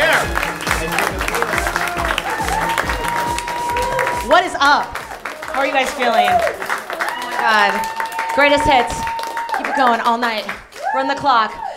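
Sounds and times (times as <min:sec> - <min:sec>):
audience applauding: 0:00.0 - 0:11.7
speech: 0:04.6 - 0:05.0, 0:05.6 - 0:06.6, 0:07.4 - 0:09.1, 0:09.8 - 0:11.6.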